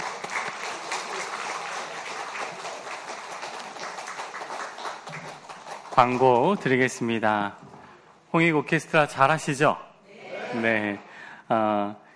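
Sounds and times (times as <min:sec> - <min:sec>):
audience applause: 0:00.0 - 0:06.9
speech: 0:06.0 - 0:07.6, 0:08.3 - 0:09.9, 0:10.5 - 0:12.0.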